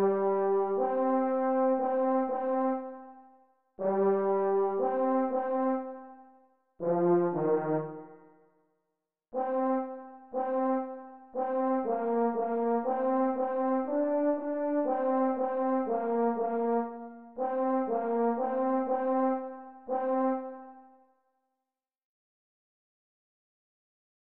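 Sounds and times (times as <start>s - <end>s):
F horn playing a part: 0.0s - 3.2s, 3.8s - 6.2s, 6.8s - 8.2s, 9.4s - 20.8s.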